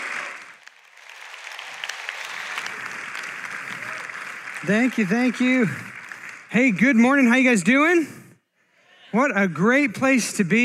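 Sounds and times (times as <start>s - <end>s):
church congregation applauding to welcome a pastor: 0.0s - 7.7s
speech: 4.6s - 5.9s, 6.5s - 8.2s, 9.1s - 10.6s.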